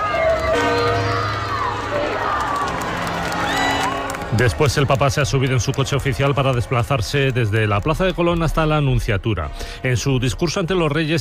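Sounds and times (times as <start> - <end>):
crowd of 130,000 chanting and shouting: 0.0 - 11.1
speech: 4.3 - 11.1.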